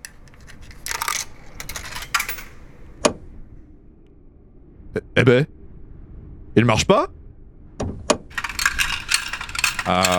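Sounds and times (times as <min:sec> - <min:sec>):
coins dropping into a vending machine: 0:00.0 - 0:02.8, 0:08.3 - 0:10.1
speech: 0:05.2 - 0:05.6, 0:06.6 - 0:07.2, 0:09.9 - 0:10.1.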